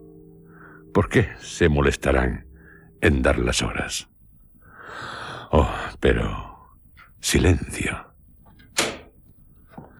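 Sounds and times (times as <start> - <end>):
speech: 1.0 - 4.1, 4.9 - 6.5, 7.2 - 8.1
room door opening: 8.5 - 9.9.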